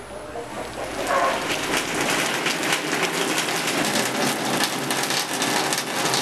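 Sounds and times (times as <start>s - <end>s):
rain falling: 0.4s - 6.1s.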